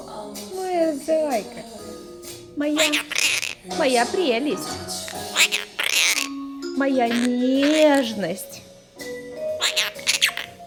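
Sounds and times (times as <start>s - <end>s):
speech: 1.0s - 1.8s, 2.6s - 5.6s, 6.8s - 8.5s
monk parakeet chatter: 2.6s - 8.6s, 9.5s - 10.6s.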